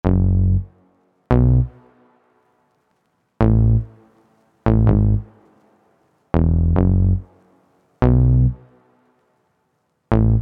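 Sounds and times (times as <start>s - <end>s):
bass: 0.0s - 1.9s, 3.4s - 4.0s, 4.6s - 5.4s, 6.3s - 7.4s, 8.0s - 8.8s, 10.1s - 10.4s.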